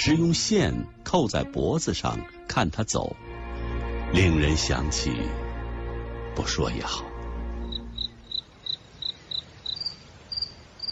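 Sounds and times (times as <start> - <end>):
speech: 0.0 - 3.2, 4.1 - 5.4, 6.4 - 7.1
cricket chirping: 7.6 - 10.8.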